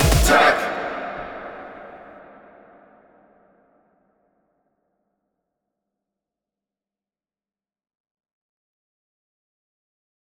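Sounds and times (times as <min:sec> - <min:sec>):
vocals: 0:00.0 - 0:03.3.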